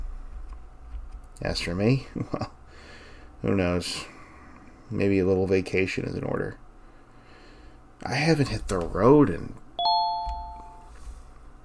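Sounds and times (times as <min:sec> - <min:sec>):
speech: 0:01.4 - 0:02.6, 0:03.4 - 0:04.2, 0:04.9 - 0:06.6, 0:08.0 - 0:09.6
notification chime: 0:09.8 - 0:10.9.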